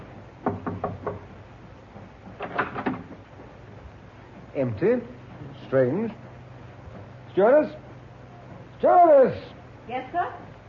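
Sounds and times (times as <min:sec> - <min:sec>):
knocking on a cabin door: 0:00.4 - 0:01.3
speech: 0:04.6 - 0:06.2, 0:07.4 - 0:07.8, 0:08.8 - 0:10.4.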